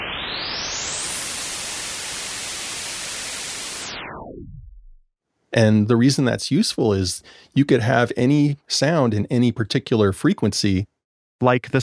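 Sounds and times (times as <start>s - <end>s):
white noise: 0.1s - 4.0s
speech: 5.6s - 11.8s.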